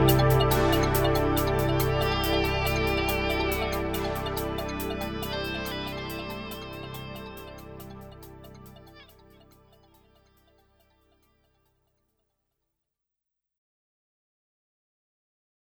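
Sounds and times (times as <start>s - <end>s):
karaoke backing track: 0.0s - 8.8s.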